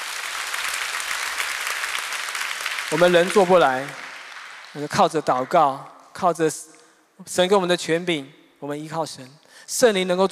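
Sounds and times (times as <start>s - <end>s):
congregation applauding during a church service: 0.0s - 6.1s
speech: 2.9s - 4.0s, 4.7s - 10.3s.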